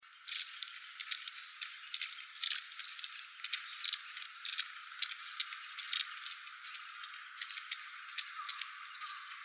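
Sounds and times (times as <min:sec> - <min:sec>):
long-tailed tit calls: 0:01.1 - 0:09.4.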